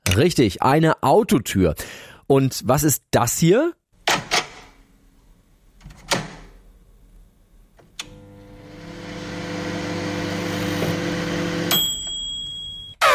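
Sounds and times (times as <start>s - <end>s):
speech: 0.2s - 3.8s
microwave oven humming: 7.9s - 12.8s
microwave oven beep: 11.6s - 13.0s.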